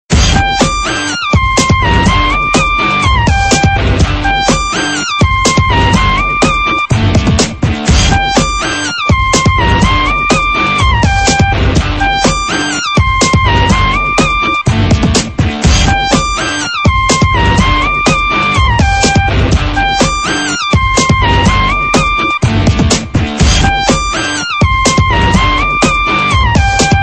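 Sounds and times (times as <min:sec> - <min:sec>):
tone: 0:00.3 - 0:22.5, 0:23.4 - 0:27.0.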